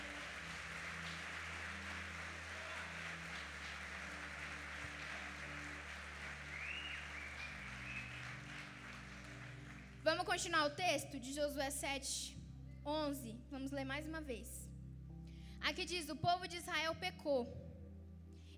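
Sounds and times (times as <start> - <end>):
audience applauding: 0.0 - 10.0
sustained low keyboard or organ notes: 0.0 - 10.6
speech: 10.1 - 14.6, 15.7 - 17.6.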